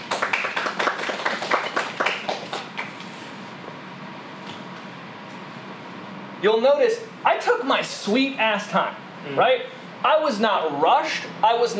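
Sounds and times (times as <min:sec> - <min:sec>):
audience clapping: 0:00.0 - 0:03.1
speech: 0:06.4 - 0:11.7.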